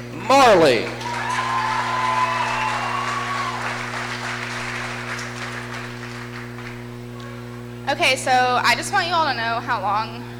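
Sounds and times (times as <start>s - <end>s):
speech: 0.0s - 1.0s, 7.9s - 10.3s
crowd applause: 0.4s - 6.9s
high whoops and cheers: 1.0s - 4.6s.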